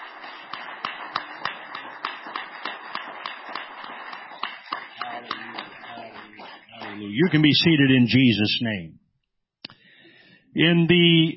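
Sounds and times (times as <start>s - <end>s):
audience hand clapping in praise: 0.0s - 8.1s
speech: 7.2s - 9.0s, 10.6s - 11.3s.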